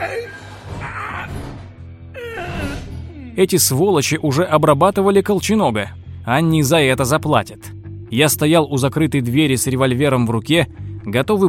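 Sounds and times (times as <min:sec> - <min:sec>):
man moaning in pain after a crash: 0:00.0 - 0:01.3, 0:02.1 - 0:03.4
speech: 0:03.4 - 0:11.4.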